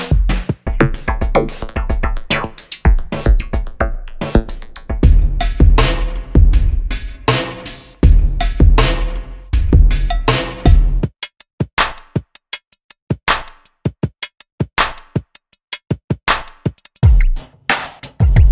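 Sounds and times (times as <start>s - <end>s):
music loop: 0.1s - 11.4s, 16.0s - 18.4s.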